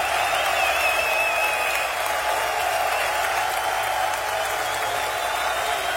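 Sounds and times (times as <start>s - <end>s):
audience applauding: 0.0s - 5.9s.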